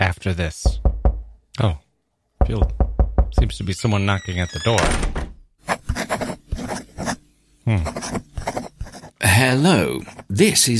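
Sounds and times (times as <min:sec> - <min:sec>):
speech: 0:00.2 - 0:00.8, 0:01.6 - 0:01.8, 0:02.4 - 0:05.2, 0:07.7 - 0:08.2, 0:09.4 - 0:10.7
pen scratching on paper: 0:05.6 - 0:07.2, 0:07.8 - 0:10.6.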